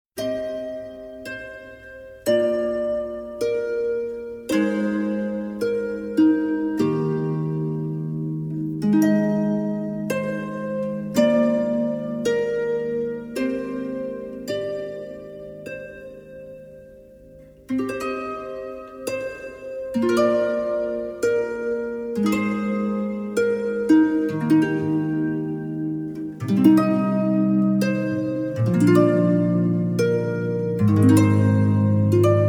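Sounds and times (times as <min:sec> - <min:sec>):
harp: 0:00.2 - 0:32.4.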